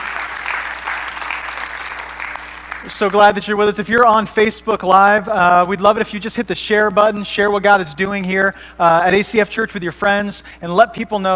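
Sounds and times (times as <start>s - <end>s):
church congregation applauding to welcome online viewers: 0.0s - 3.4s
speech: 2.8s - 11.3s.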